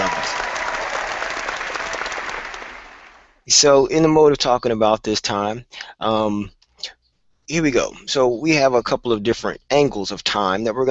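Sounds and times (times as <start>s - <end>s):
studio audience clapping: 0.0s - 3.4s
speech: 3.5s - 10.9s.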